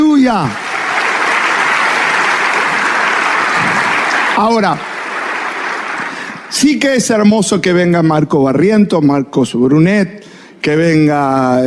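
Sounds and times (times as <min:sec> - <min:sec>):
applause: 0:00.0 - 0:06.7
speech: 0:00.3 - 0:00.6, 0:04.4 - 0:04.9, 0:06.5 - 0:11.6.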